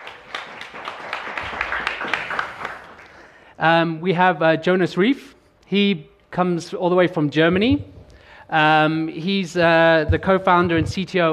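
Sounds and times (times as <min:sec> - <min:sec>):
audience applause: 0:00.0 - 0:03.4
speech: 0:03.6 - 0:07.9, 0:08.5 - 0:11.3.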